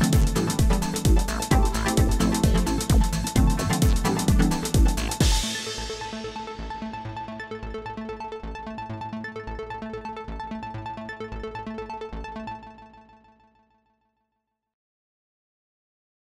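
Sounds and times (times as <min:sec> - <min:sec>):
techno pop music: 0:00.0 - 0:12.1.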